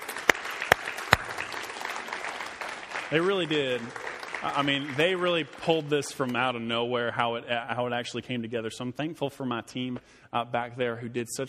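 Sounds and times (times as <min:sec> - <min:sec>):
round of applause: 0:00.0 - 0:06.2
speech: 0:03.1 - 0:11.4.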